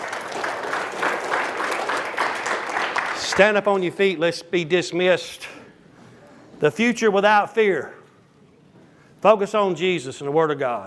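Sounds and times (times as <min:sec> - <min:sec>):
audience clapping: 0:00.0 - 0:04.0
speech: 0:03.4 - 0:05.6, 0:06.6 - 0:08.0, 0:09.2 - 0:10.8.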